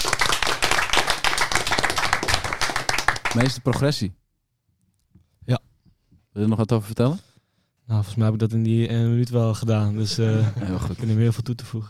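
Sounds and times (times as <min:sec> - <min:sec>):
crowd applauding: 0:00.0 - 0:03.8
speech: 0:03.4 - 0:04.2, 0:06.4 - 0:07.3, 0:07.9 - 0:11.8
laughter: 0:10.0 - 0:11.0.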